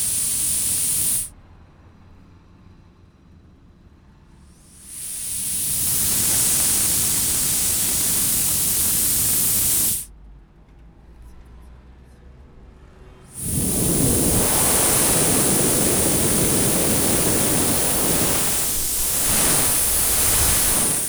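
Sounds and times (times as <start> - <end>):
tyre inflation station: 0.0 - 1.3, 4.6 - 10.1, 13.4 - 21.0.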